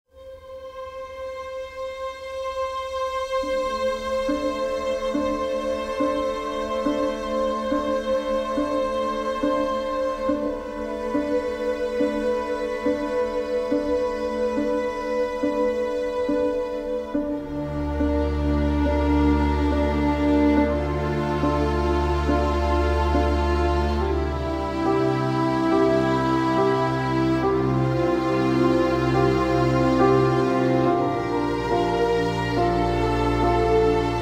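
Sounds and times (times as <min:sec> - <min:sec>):
instrumental music: 0:00.1 - 0:34.2.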